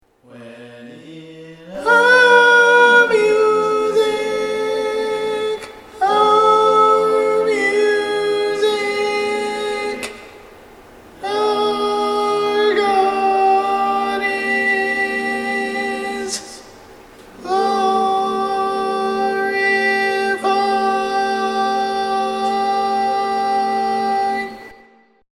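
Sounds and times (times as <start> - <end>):
barbershop tags singing: 0.3 - 10.4, 11.2 - 16.6, 17.2 - 24.8.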